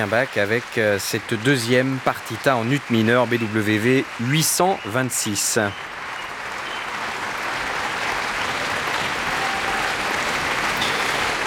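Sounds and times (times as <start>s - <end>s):
speech: 0.0s - 6.0s
audience applause after a piano recital at La Roque d'Anthéron: 0.0s - 11.4s.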